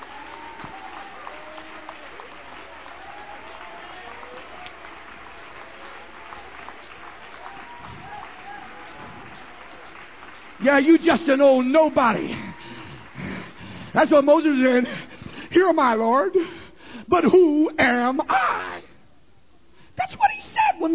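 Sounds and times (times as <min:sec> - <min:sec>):
audience applauding: 0:00.0 - 0:14.8
speech: 0:10.6 - 0:12.5, 0:14.0 - 0:18.6.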